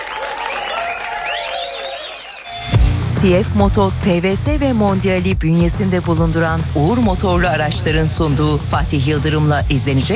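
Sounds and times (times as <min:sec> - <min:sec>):
audience applause: 0:00.0 - 0:02.7
cheers: 0:00.0 - 0:02.7
whistles: 0:00.4 - 0:02.6
speech: 0:03.2 - 0:10.1.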